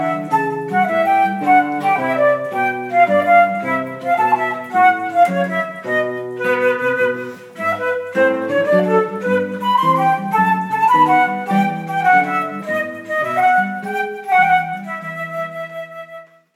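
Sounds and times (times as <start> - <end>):
flute: 0.0 - 16.5
guitar: 0.0 - 16.5.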